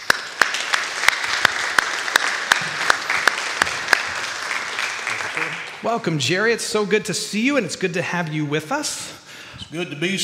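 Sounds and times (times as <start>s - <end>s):
audience applauding to welcome a guest speaker: 0.0s - 6.3s
speech: 5.8s - 10.2s.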